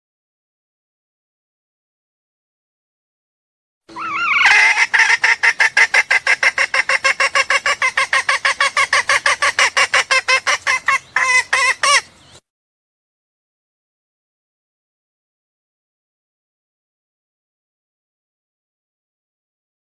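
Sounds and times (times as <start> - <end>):
junglefowl clucking: 3.9 - 12.1.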